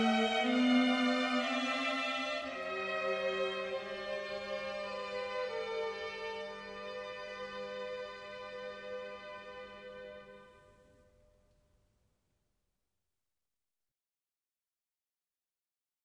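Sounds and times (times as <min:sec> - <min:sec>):
chorale: 0:00.0 - 0:11.0.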